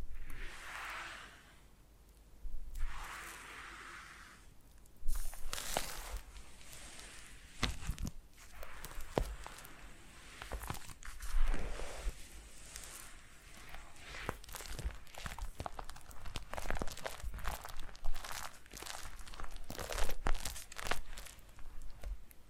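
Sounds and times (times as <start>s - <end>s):
foam being massaged and squeezed: 0.1s - 1.7s, 2.7s - 22.4s.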